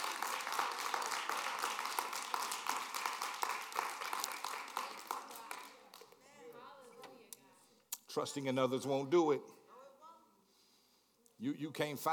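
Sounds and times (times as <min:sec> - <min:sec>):
audience clapping hands: 0:00.0 - 0:06.2
speech: 0:08.2 - 0:09.6, 0:11.4 - 0:12.1.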